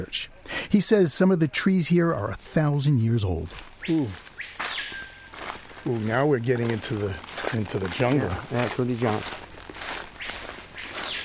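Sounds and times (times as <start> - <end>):
speech: 0.0 - 4.3, 5.8 - 9.3
Jungle Captain bird calling in Amazon forest: 3.7 - 11.2.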